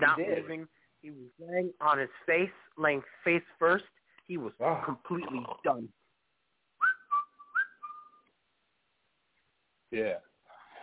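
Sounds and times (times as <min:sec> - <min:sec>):
speech: 0:00.0 - 0:06.0, 0:09.9 - 0:10.3
person whistling imitation of tweeting birds: 0:06.8 - 0:08.2.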